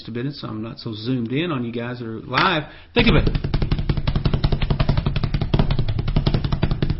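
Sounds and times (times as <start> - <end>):
speech: 0.1 - 3.5
person imitating horse hoof beats: 3.0 - 6.9.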